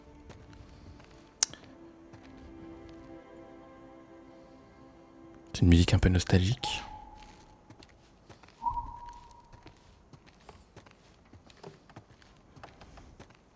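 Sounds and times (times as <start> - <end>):
footsteps of a person walking alone: 0.0 - 3.2, 6.6 - 13.5
speech: 5.6 - 6.9.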